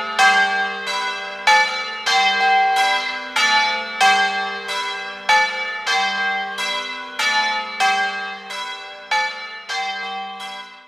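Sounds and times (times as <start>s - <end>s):
bells on a boat: 0.0s - 10.8s.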